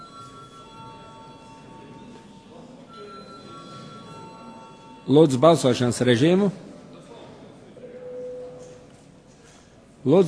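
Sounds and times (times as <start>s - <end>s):
parliament chamber bell ringing: 0.0s - 5.9s
speech: 5.1s - 6.7s, 10.0s - 10.2s.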